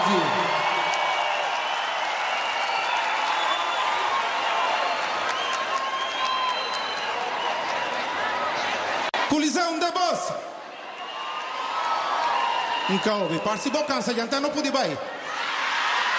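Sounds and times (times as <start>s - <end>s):
concert crowd shouts and whistles: 0.0s - 8.0s, 10.8s - 14.3s
concert crowd applauding: 0.0s - 9.8s, 10.6s - 14.8s
speech: 0.1s - 0.4s, 10.1s - 10.6s, 12.9s - 15.1s.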